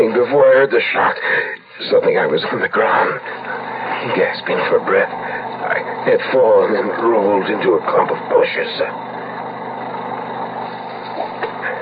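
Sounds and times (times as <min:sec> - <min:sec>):
small two-stroke generator engine running: 0:00.0 - 0:11.8
speech: 0:00.2 - 0:09.1.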